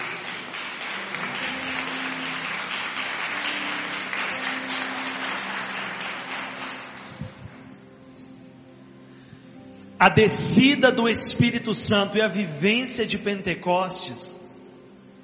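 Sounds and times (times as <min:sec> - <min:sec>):
audience applauding: 0:00.0 - 0:07.8
speech: 0:10.0 - 0:14.4.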